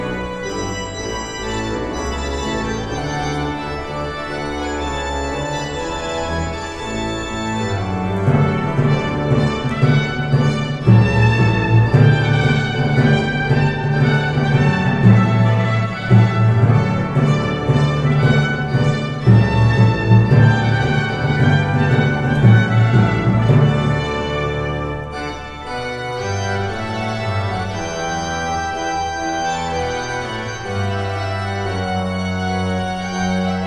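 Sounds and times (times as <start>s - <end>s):
organ playing a prelude: 0.0s - 33.6s
trumpet playing a prelude: 0.0s - 33.6s.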